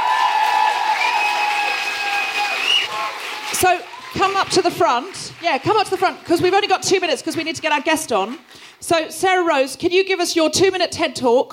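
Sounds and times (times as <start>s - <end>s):
audience applause: 0.0s - 8.8s
speech: 3.6s - 11.5s.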